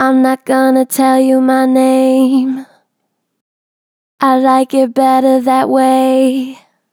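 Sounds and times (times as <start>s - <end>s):
Harmor synthesized vocals with gentle natural vibrato: 0.0s - 2.8s, 4.2s - 6.7s.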